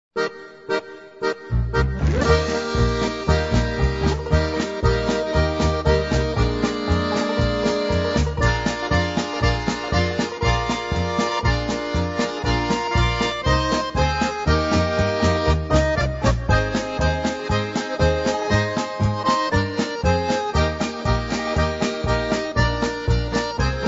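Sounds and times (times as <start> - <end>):
polka music: 0.2 - 23.8.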